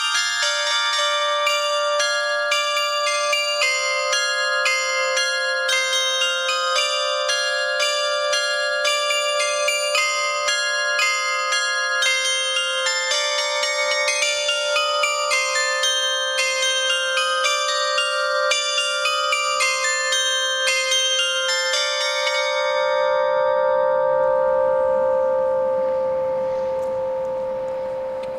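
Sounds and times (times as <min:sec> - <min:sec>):
glockenspiel: 0:00.0 - 0:28.3.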